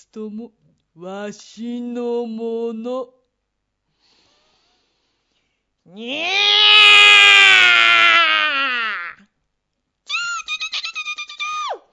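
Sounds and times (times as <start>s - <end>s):
speech: 0.0s - 3.2s, 5.9s - 6.8s
old man imitating a cat's meow to scare off mice: 5.9s - 9.2s.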